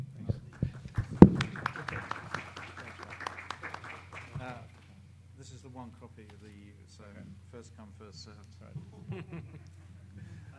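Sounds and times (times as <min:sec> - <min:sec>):
murmur of voices: 0:00.0 - 0:10.5
small group hand clapping: 0:00.3 - 0:04.9
laughter: 0:00.6 - 0:04.6, 0:08.8 - 0:10.5
speech: 0:05.8 - 0:09.8.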